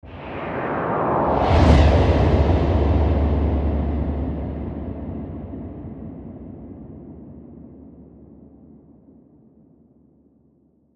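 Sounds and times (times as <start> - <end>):
windy sweep: 0.0 - 7.7.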